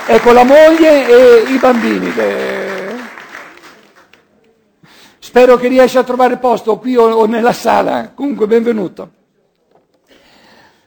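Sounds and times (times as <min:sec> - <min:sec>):
audience applause welcoming a guest: 0:00.0 - 0:04.3
speech: 0:00.1 - 0:02.7, 0:05.3 - 0:09.2.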